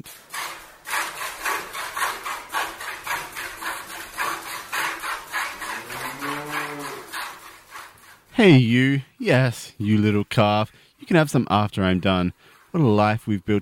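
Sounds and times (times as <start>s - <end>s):
churning butter in a churn: 0.0s - 8.4s
speech: 8.4s - 13.6s.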